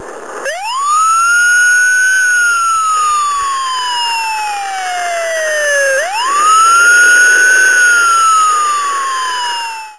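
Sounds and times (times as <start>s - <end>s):
police siren: 0.4s - 9.9s.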